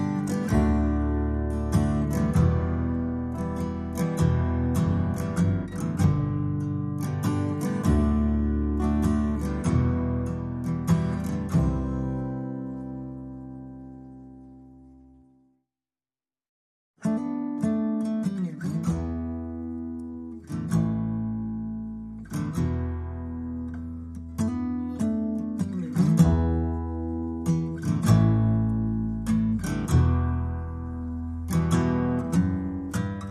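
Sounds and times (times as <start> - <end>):
brass band music bass: 0.0 - 15.6, 18.6 - 33.3
brass band music guitar: 0.0 - 15.6, 17.0 - 33.3.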